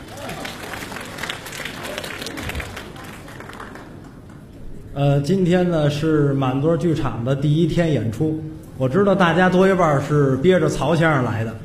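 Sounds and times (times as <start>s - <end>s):
audience applause: 0.0s - 4.6s
speech: 5.0s - 11.6s.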